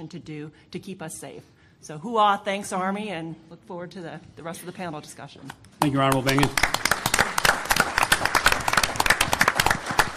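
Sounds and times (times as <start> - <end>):
speech: 0.0 - 6.8
room full of government officials clapping: 5.6 - 10.1.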